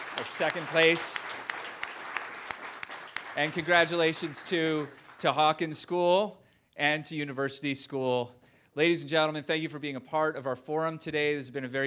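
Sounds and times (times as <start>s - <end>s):
audience applause: 0.0s - 5.5s
speech: 0.2s - 1.6s, 3.4s - 11.8s.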